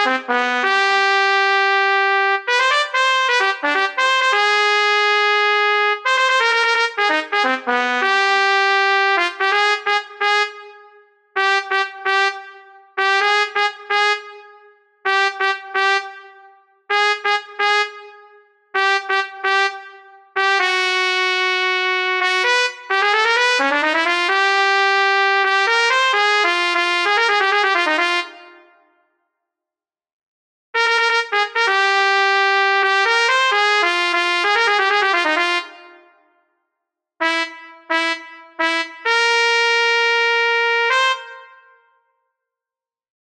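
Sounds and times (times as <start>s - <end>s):
trumpet in Bb: 0.0s - 29.0s, 30.8s - 36.3s, 37.2s - 42.1s.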